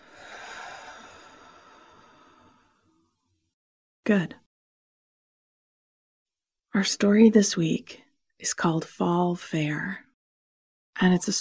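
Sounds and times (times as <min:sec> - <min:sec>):
person breathing slowly in and out: 0:00.0 - 0:03.1
speech: 0:04.1 - 0:04.4, 0:06.7 - 0:10.0, 0:11.0 - 0:11.3.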